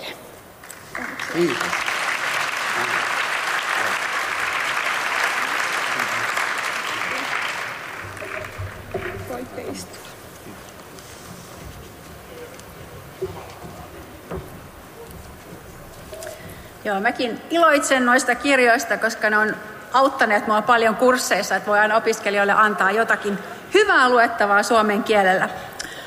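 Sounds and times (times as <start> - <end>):
audience applause: 0.6 - 10.2
speech: 1.3 - 1.7, 16.9 - 25.7.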